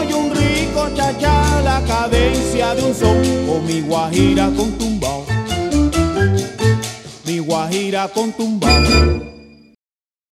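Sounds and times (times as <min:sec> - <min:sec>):
charanga music: 0:00.0 - 0:09.5.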